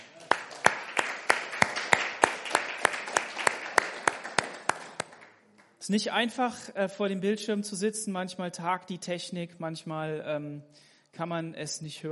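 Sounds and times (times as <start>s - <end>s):
audience applause: 0.0s - 5.4s
speech: 5.9s - 12.1s.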